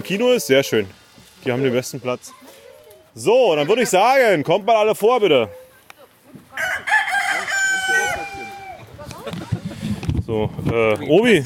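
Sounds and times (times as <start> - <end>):
speech: 0.0 - 2.4, 3.2 - 5.6, 10.3 - 11.4
rooster crowing on a farmyard: 6.5 - 8.9.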